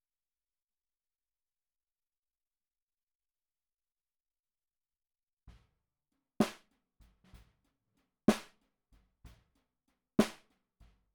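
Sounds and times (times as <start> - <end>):
snare drum recorded from the bottom: 6.4 - 7.6, 8.3 - 9.5, 10.2 - 11.0.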